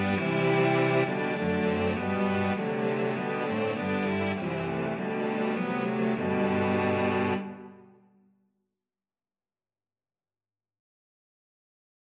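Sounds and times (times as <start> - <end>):
cello quartet: 0.0 - 7.9.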